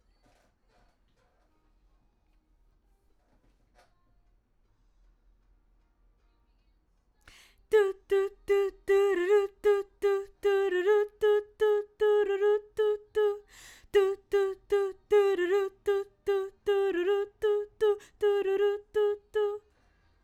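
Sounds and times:
background vocals: 0:07.3 - 0:19.7.

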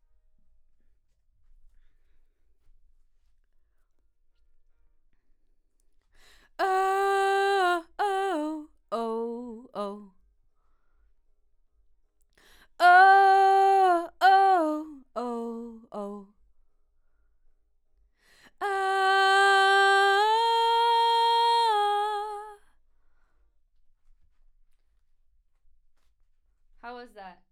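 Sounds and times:
vocal: 0:06.6 - 0:10.1, 0:12.8 - 0:16.3, 0:18.5 - 0:22.6.

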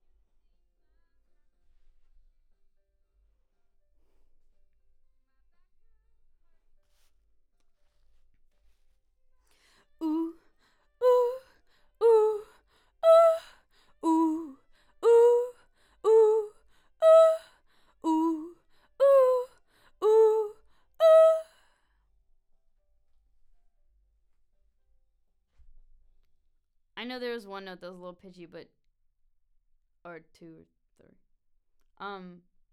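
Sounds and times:
background vocals: 0:10.0 - 0:10.4, 0:11.0 - 0:21.5.

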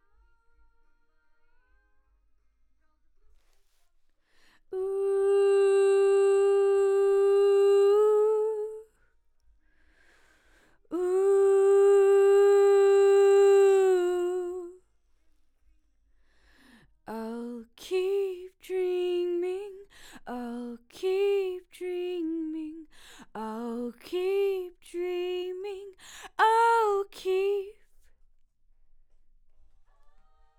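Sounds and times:
vocal: 0:04.7 - 0:08.9, 0:10.9 - 0:14.8, 0:17.1 - 0:27.8.

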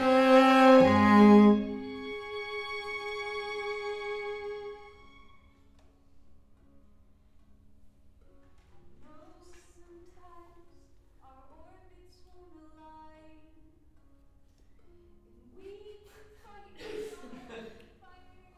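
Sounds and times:
cello: 0:00.0 - 0:05.5.

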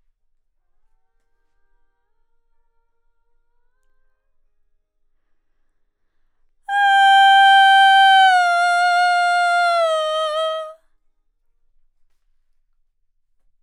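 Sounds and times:
vocal: 0:06.7 - 0:10.8.

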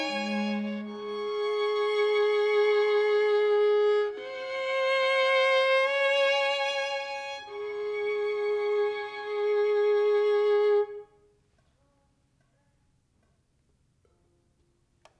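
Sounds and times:
violin: 0:00.0 - 0:11.2.

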